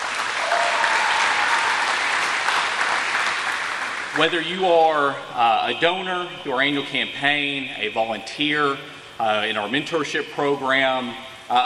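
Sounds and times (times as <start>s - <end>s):
room of people applauding: 0.0s - 5.1s
speech: 4.2s - 11.6s.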